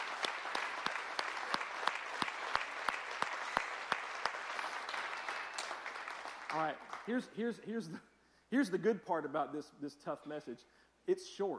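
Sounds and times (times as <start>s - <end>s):
audience clapping hands: 0.0s - 7.4s
speech: 6.6s - 11.5s.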